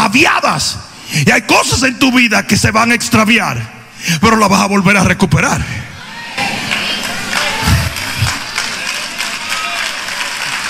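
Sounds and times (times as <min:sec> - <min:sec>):
speech: 0:00.1 - 0:05.9
audience applause: 0:06.4 - 0:10.6.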